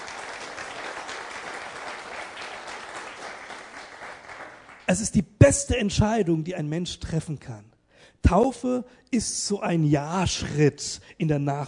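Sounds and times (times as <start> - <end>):
audience applause: 0.0 - 4.9
speech: 4.9 - 11.6.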